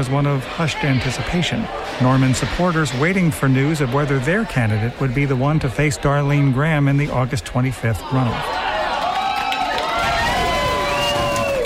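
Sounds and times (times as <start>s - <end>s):
supporters cheering at an election night watch party in Hobo's restaurant: 0.0s - 5.5s, 7.9s - 11.6s
speech: 0.0s - 8.7s.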